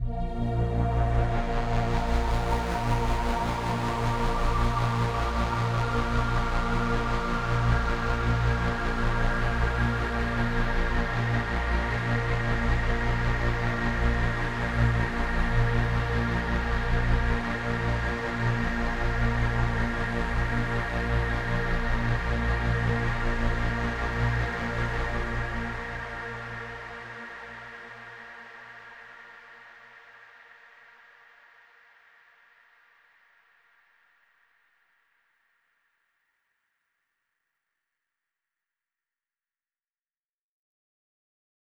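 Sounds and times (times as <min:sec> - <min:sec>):
overlay drone: 0:00.0 - 0:32.6.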